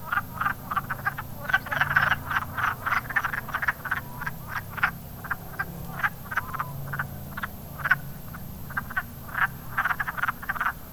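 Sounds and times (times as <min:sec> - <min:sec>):
wood frogs croaking: 0:00.0 - 0:10.9.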